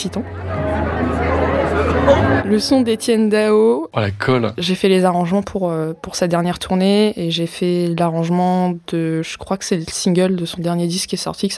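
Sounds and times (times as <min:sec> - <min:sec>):
concert crowd murmur before show: 0:00.0 - 0:03.7
speech: 0:00.0 - 0:11.5.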